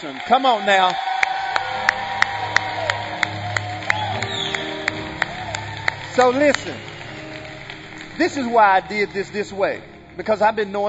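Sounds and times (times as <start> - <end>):
speech: 0.0 - 1.1, 6.2 - 6.9, 8.2 - 10.8
crowd cheering: 0.0 - 10.2
audience clapping in a steady rhythmic beat: 0.0 - 10.8.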